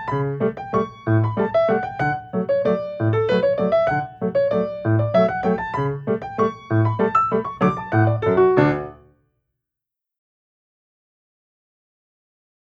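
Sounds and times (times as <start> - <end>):
piano waltz exercise: 0.0 - 9.1.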